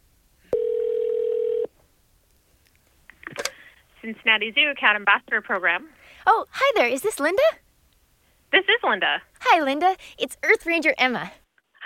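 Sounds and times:
telephone call connecting ring tone: 0.5 - 1.7
speech: 4.0 - 7.6, 8.5 - 11.8.

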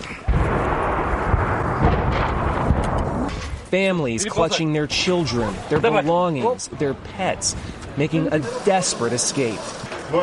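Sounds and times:
Russian artillery shells exploding: 0.3 - 3.7
speech: 3.7 - 10.2.

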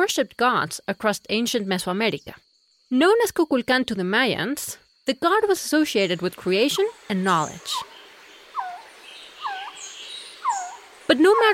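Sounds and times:
speech: 0.0 - 7.9, 11.1 - 11.5
steady high background hiss: 0.5 - 11.5
Resplendent Quetzal calling: 6.0 - 11.5.

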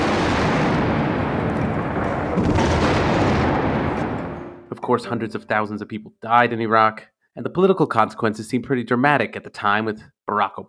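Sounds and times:
bombardment explosions of military strike: 0.0 - 4.9
speech: 2.4 - 2.8, 4.8 - 10.6.

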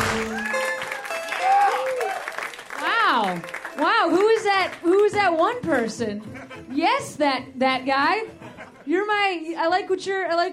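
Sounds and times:
audience clapping hands: 0.0 - 6.0
speech: 5.2 - 10.5
laughter: 6.0 - 7.1, 8.2 - 9.0.

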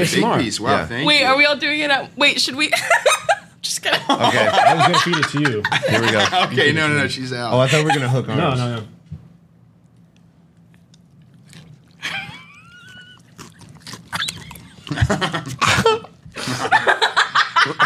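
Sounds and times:
speech: 0.0 - 8.9, 15.1 - 15.6
laughter: 2.7 - 6.8, 7.6 - 8.3, 14.6 - 17.8
potato chips crunching close to microphone: 12.8 - 15.6.

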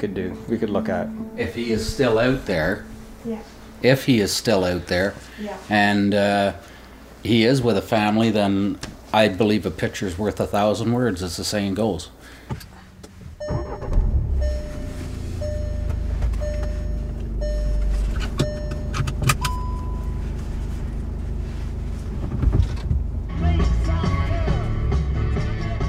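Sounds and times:
speech: 0.0 - 12.6
car driving on a road out of Ajax, Ontario: 12.5 - 25.8.

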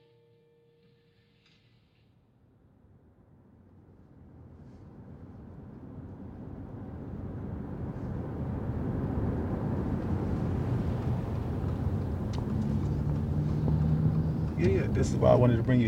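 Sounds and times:
car engine rumble driving around a new parking garage in West Philadelphia: 3.6 - 15.8
speech: 14.9 - 15.8.

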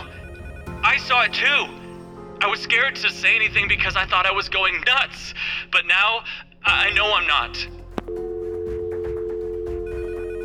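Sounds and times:
telephones ringing: 0.0 - 2.2, 8.0 - 10.4
speech: 0.9 - 1.8, 2.4 - 8.2.

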